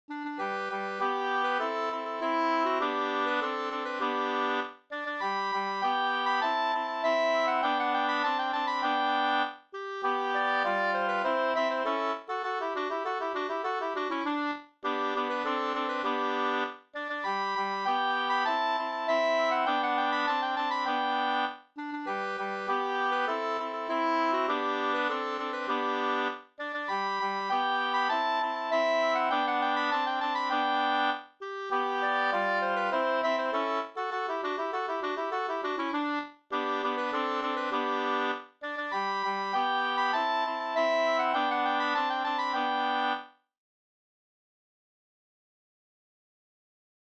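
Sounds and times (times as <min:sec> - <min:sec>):
folk song melody: 0:00.1 - 0:43.3.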